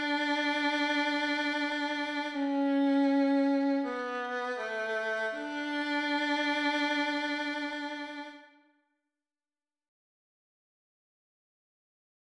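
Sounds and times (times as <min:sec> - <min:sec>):
violin playing the D major scale: 0:00.0 - 0:08.6.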